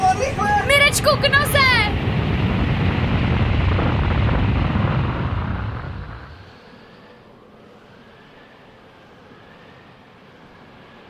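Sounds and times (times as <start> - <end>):
avalanche rumbling: 0.0 - 7.1
speech: 1.0 - 1.6.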